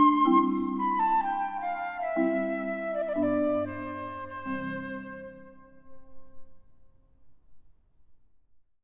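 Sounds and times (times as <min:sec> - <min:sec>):
classical sonata movement in C major, andante: 0:00.0 - 0:05.6.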